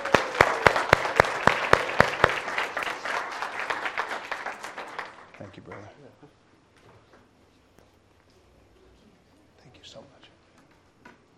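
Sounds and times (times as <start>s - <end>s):
audience applause and hand clapping: 0.0s - 6.0s.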